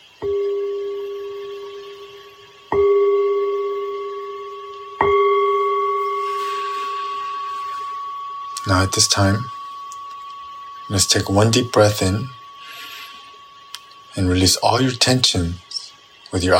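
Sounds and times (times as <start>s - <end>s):
meditation bell ringing: 0.0s - 13.3s
speech: 8.7s - 9.5s, 10.9s - 12.4s, 14.2s - 15.6s, 16.3s - 16.5s.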